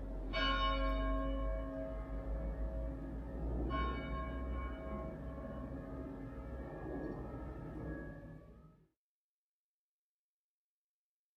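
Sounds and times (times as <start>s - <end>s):
cathedral bell tuned to C sharp: 0.0s - 8.7s.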